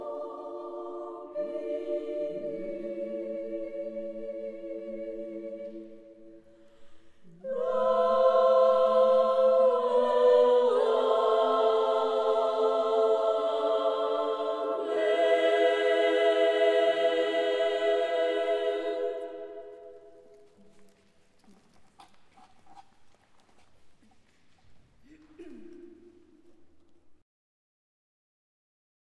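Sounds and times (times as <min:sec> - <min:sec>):
choir singing: 0:00.0 - 0:21.0.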